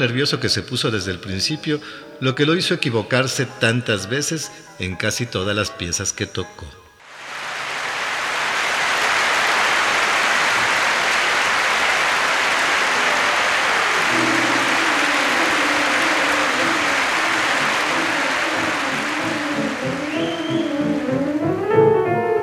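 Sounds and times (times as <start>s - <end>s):
speech: 0.0s - 6.8s
audience applause: 7.2s - 22.4s.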